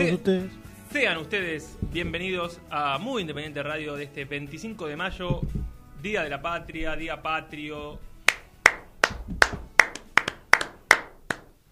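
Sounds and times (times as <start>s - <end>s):
speech: 0.0s - 8.1s
hand clapping: 8.2s - 11.6s.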